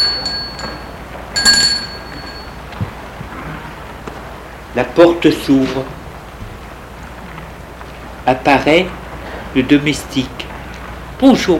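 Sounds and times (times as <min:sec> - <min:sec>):
bright high-pitched doorbell ringing: 0:00.0 - 0:02.7
faint chime: 0:00.0 - 0:02.7
speech: 0:04.8 - 0:06.0, 0:08.3 - 0:10.4, 0:11.2 - 0:11.5.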